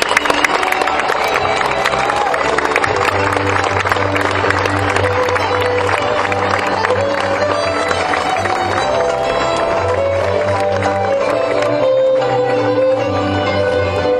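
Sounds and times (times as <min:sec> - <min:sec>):
scattered cheers: 0:00.0 - 0:04.1
crowd applauding: 0:00.0 - 0:14.1.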